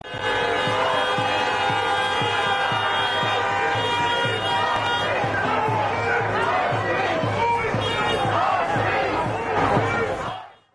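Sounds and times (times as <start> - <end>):
car horns honking: 0.0 - 6.6, 7.4 - 8.6
crowd chanting: 0.0 - 10.7.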